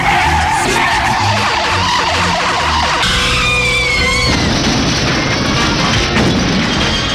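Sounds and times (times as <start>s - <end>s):
car engine rumbling: 0.0s - 7.1s
car tires squealing: 0.0s - 7.1s
crunching smash-like impact: 3.0s - 7.1s.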